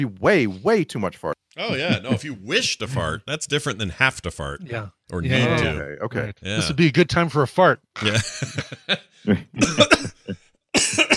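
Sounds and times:
speech: 0.0s - 11.1s
laughter: 1.6s - 3.2s, 8.0s - 11.1s
sputtering coughs from choking: 9.4s - 11.1s.

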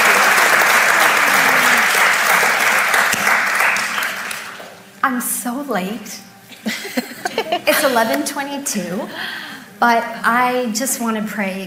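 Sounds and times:
laughter: 0.0s - 2.0s, 6.6s - 8.3s
round of applause: 0.0s - 4.8s
speech: 5.0s - 11.6s.

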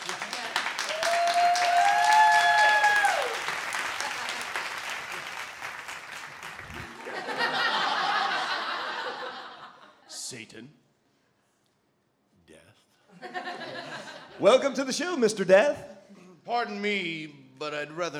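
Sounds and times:
audience round of applause: 0.0s - 9.5s
whoops and cheers: 0.8s - 3.6s
laughter: 3.7s - 5.6s, 6.2s - 10.2s, 13.1s - 14.9s
speech: 14.4s - 15.9s, 16.5s - 18.1s.

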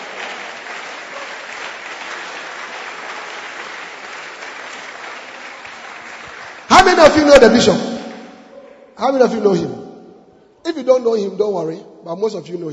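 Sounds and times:
large audience clapping hands: 0.0s - 8.5s
speech: 7.0s - 7.9s, 9.0s - 9.8s, 10.7s - 12.7s.

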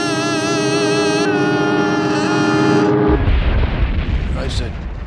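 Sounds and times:
aircraft crashing nearby: 0.1s - 5.0s.

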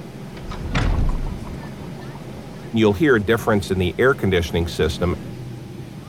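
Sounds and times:
low rumble: 0.2s - 2.6s
aircraft tow bar disconnecting clunk: 0.3s - 1.8s
speech: 2.7s - 5.3s.

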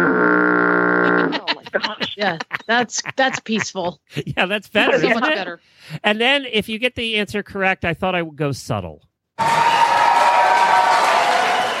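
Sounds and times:
laughter: 1.0s - 5.4s
speech: 2.2s - 9.9s
crowd cheering: 9.4s - 11.7s.

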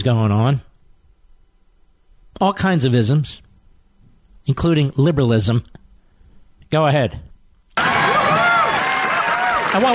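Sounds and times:
speech: 0.0s - 0.7s, 2.4s - 3.4s, 4.5s - 5.8s, 6.7s - 7.3s, 9.7s - 9.9s
large crowd cheering and applauding: 7.8s - 9.9s.

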